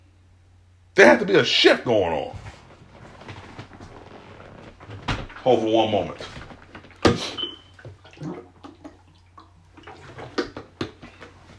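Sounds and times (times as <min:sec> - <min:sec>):
speech: 0:01.0 - 0:02.4, 0:05.4 - 0:06.4
water being poured: 0:05.5 - 0:10.4.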